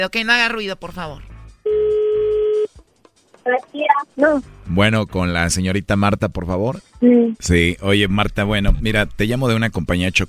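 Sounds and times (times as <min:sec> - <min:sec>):
speech: 0:00.0 - 0:01.3, 0:03.4 - 0:10.2
telephone tone: 0:01.7 - 0:02.7.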